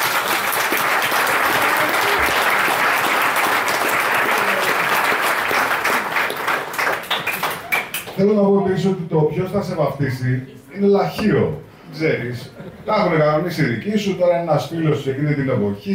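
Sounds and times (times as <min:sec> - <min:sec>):
large audience applause: 0:00.0 - 0:08.2
speech: 0:08.2 - 0:15.9.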